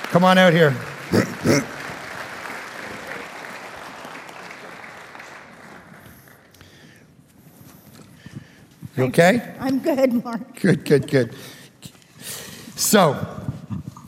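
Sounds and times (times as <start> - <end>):
audience applause welcoming a guest onto the stage: 0.0 - 6.6
speech: 0.1 - 1.8, 9.0 - 11.6, 12.9 - 13.4.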